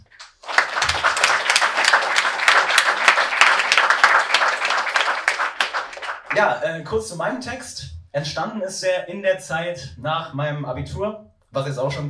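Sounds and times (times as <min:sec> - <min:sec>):
audience applause: 0:00.2 - 0:06.5
speech: 0:06.4 - 0:12.0.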